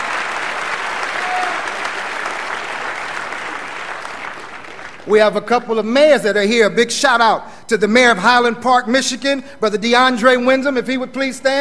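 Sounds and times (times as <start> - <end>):
audience applause: 0.0 - 5.1
speech: 5.1 - 11.5.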